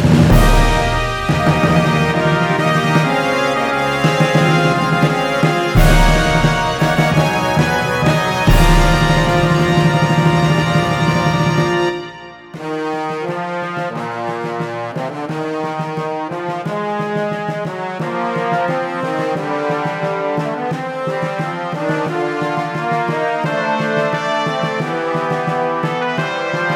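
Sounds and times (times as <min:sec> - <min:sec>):
fanfare: 0:00.1 - 0:15.6, 0:16.4 - 0:26.7.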